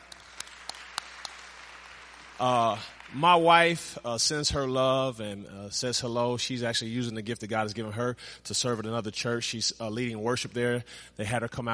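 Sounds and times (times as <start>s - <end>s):
audience applauding: 0.0s - 3.8s
speech: 2.4s - 11.7s.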